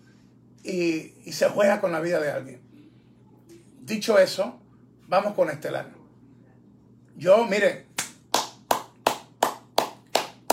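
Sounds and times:
faint low hum: 0.0s - 10.5s
speech: 0.6s - 2.7s, 3.9s - 6.0s, 7.2s - 7.9s
person clapping hands: 8.0s - 10.5s.

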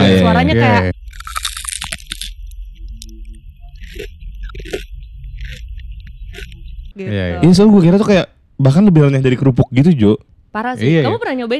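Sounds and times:
steady low hum: 0.0s - 9.4s
speech: 0.1s - 1.0s, 7.0s - 11.5s
crunchy eating: 0.9s - 6.8s.

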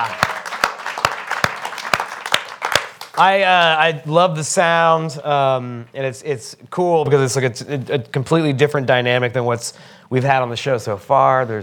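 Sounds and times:
audience applause for a band: 0.0s - 3.4s
speech: 3.2s - 11.6s.

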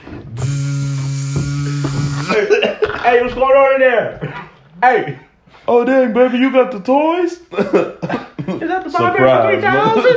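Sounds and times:
voice imitating an electric razor starting up to shave a head: 0.3s - 2.5s
speech: 3.1s - 10.1s.

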